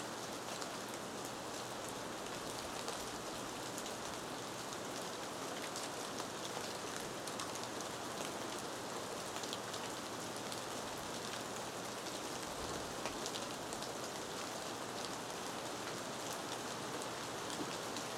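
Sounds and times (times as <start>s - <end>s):
soft rain in a rainforest: 0.0s - 18.1s.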